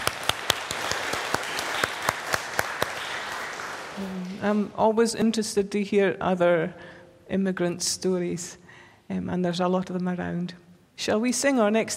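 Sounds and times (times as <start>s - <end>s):
audience clapping: 0.0s - 4.4s
speech: 4.0s - 11.9s.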